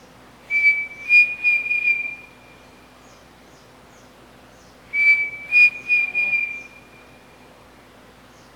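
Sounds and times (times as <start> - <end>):
pavonine cuckoo song: 0.5 - 2.9, 4.9 - 7.3.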